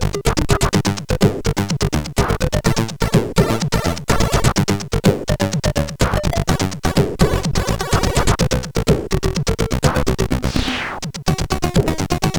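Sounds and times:
SID CSG8580R5 chip rhythm: 0.0s - 12.3s.

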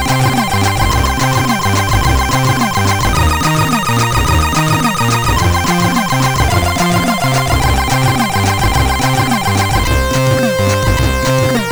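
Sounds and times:
old music: 0.0s - 11.7s.

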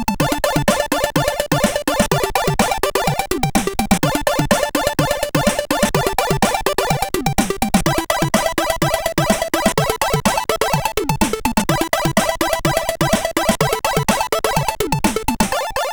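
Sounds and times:
techno music: 0.2s - 15.8s.

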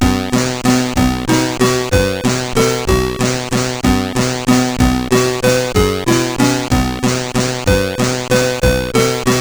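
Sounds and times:
folk music on SID 8580 chip: 0.0s - 9.3s.

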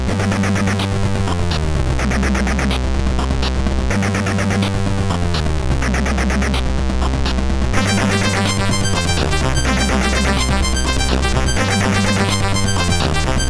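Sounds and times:
MOS6581R2 SID chip synth: 0.1s - 13.4s.

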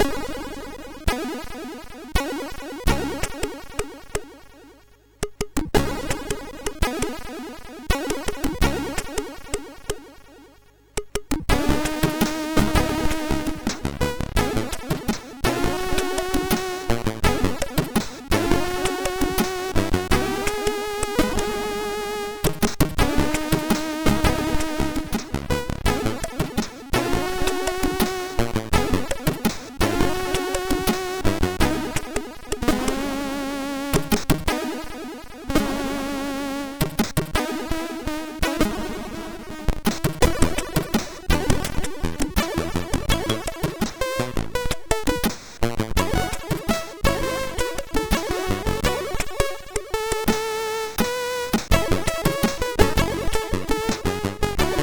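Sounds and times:
relaxing MOS6581R4 chip music: 0.0s - 54.8s.

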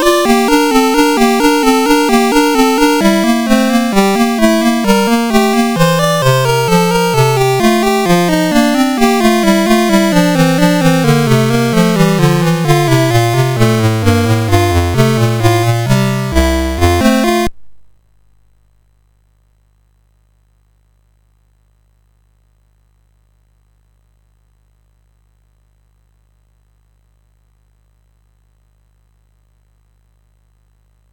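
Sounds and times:
MOS6581R4 SID chip game music: 0.0s - 17.5s.

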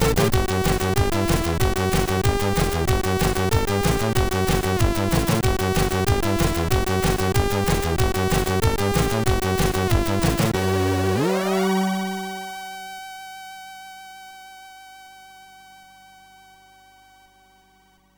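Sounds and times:
techno mix on SID MOS6581 chip: 0.0s - 12.7s.

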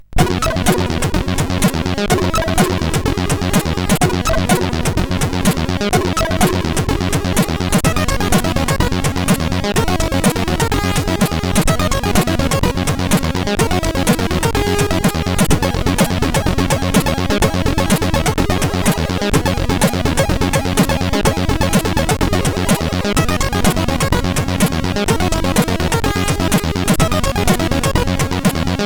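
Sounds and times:
music test on SID CSG8580R5 chip: 0.2s - 28.8s.

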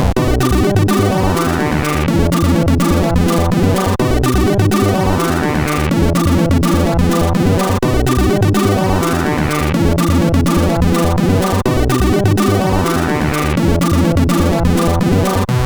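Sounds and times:
SID 8580R5 sound chip music intro: 0.2s - 15.5s.

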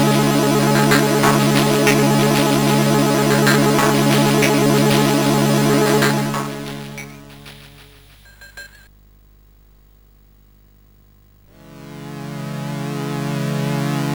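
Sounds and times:
orchestral music on SID CSG8580R5 chip: 0.0s - 7.9s, 11.6s - 14.1s.

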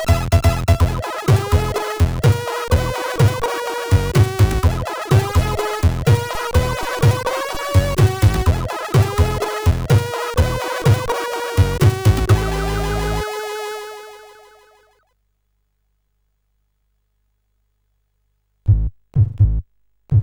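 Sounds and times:
SID CSG8580 chiptune synthesizer: 0.0s - 14.8s.

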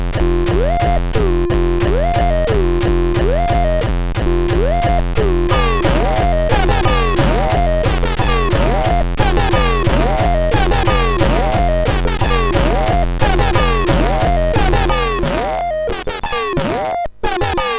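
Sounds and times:
hardcore music on MOS6581R4 chip: 0.2s - 17.7s.

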